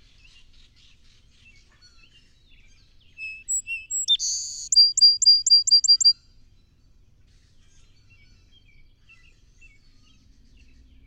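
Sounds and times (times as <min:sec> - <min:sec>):
song sparrow singing: 0:03.2 - 0:06.2.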